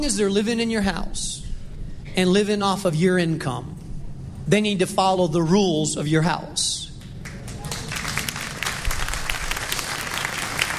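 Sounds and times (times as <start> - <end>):
speech: 0.0 - 1.5, 2.2 - 3.8, 4.5 - 6.9
audience clapping: 7.0 - 10.7.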